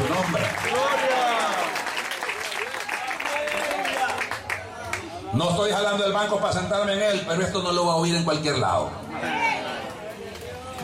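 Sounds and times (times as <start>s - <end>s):
audience applause: 0.0s - 5.1s
speech: 5.3s - 9.4s.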